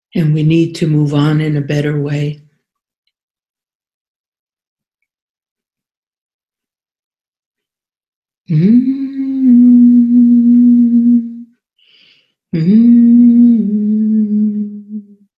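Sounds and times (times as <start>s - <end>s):
speech: 0.1s - 2.4s, 8.5s - 9.9s, 12.5s - 13.7s
person humming: 8.5s - 11.5s, 12.5s - 15.3s.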